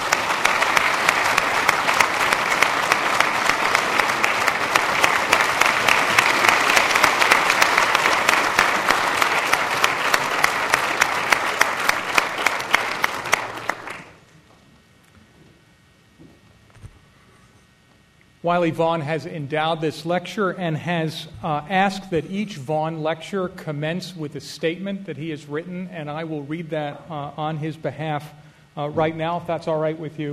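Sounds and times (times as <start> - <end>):
audience applause: 0.0 - 14.2
speech: 18.5 - 30.3.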